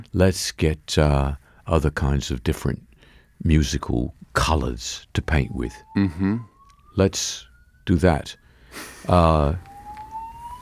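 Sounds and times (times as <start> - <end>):
speech: 0.1 - 9.7
fire alarm: 5.2 - 10.6.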